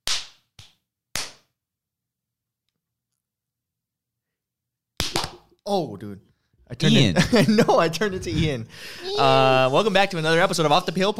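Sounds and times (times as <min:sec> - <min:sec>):
clapping sound effect: 0:00.0 - 0:01.5
speech: 0:05.7 - 0:11.1
laughter: 0:06.9 - 0:10.0.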